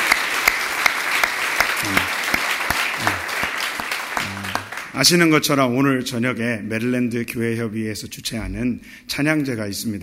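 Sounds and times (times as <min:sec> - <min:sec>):
audience applauding: 0:00.0 - 0:05.2
speech: 0:05.0 - 0:10.0.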